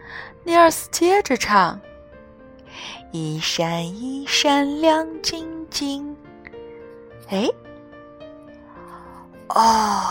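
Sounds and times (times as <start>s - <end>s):
speech: 0.4s - 1.9s, 2.9s - 6.3s, 7.3s - 7.6s, 9.5s - 10.0s
father giving a big yawn: 9.5s - 10.0s.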